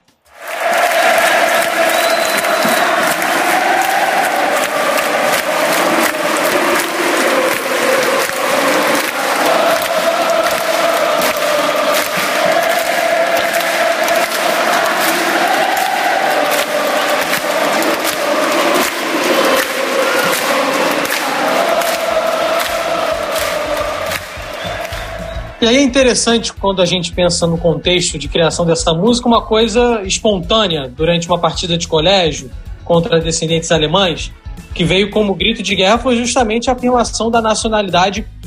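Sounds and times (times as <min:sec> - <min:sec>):
football fans chanting a song: 0:00.3 - 0:25.9
speech: 0:25.6 - 0:38.3.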